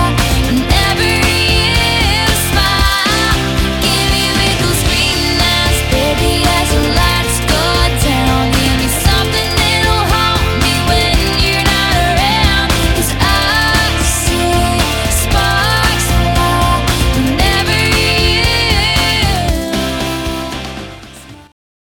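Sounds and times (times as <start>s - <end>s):
drum beat at 115 BPM: 0.0s - 20.8s.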